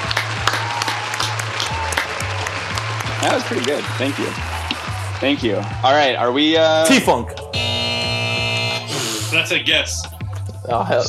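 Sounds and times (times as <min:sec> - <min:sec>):
laughter: 0:00.0 - 0:05.6, 0:10.5 - 0:11.0
crowd clapping: 0:00.0 - 0:10.2
speech: 0:03.2 - 0:04.5, 0:05.2 - 0:07.4, 0:09.3 - 0:10.1, 0:10.7 - 0:11.0.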